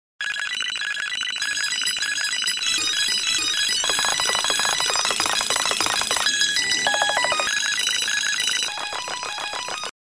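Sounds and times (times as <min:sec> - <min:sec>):
digital ringtone: 0:00.2 - 0:09.9.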